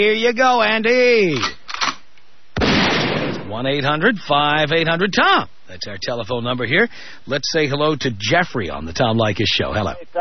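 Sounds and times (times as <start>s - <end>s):
speech: 0.0s - 1.6s, 3.5s - 10.2s
gunshot sound effect: 2.6s - 3.6s.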